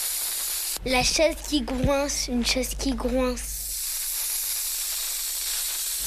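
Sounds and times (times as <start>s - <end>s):
hand pump inflating a balloon: 0.0s - 0.8s, 3.6s - 6.0s
speech: 0.8s - 3.5s.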